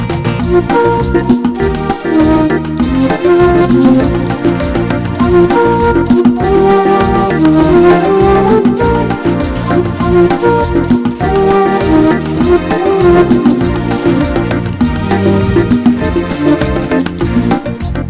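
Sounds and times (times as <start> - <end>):
samba music: 0.0 - 18.0.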